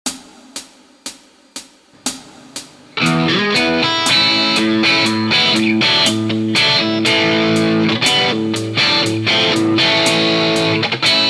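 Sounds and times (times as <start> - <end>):
guitar licks: 2.0 - 11.2.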